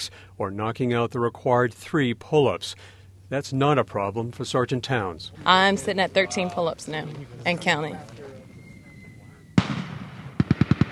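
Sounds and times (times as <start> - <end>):
speech: 0.0 - 8.3
simulated mortar fire: 9.6 - 10.9.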